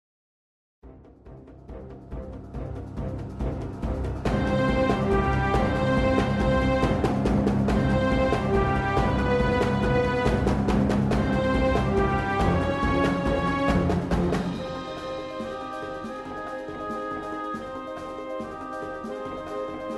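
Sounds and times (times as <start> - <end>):
orchestra playing a theme: 2.6 - 19.9.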